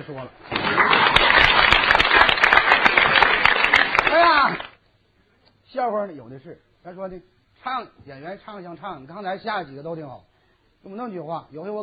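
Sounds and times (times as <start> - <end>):
speech: 0.0 - 1.6, 4.1 - 4.7, 5.7 - 11.8
audience applause: 0.4 - 4.8.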